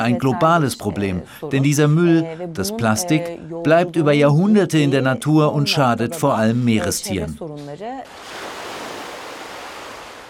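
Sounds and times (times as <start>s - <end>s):
speech: 0.0s - 8.4s
waves breaking on a beach: 8.1s - 10.2s.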